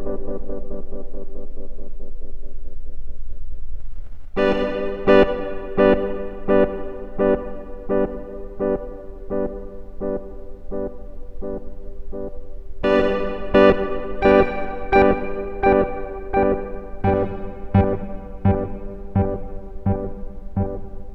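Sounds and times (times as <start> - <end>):
organ through delay and reverb effects, direct line recording: 4.4 - 21.1.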